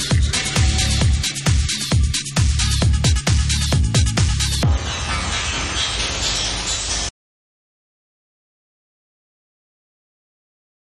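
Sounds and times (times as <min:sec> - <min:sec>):
dub music: 0:00.0 - 0:07.1.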